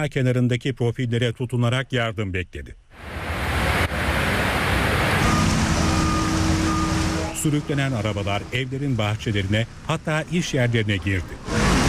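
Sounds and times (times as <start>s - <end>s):
speech: 0.0s - 3.4s, 7.4s - 11.6s
rushing floodwater flowing through streets: 3.0s - 10.6s.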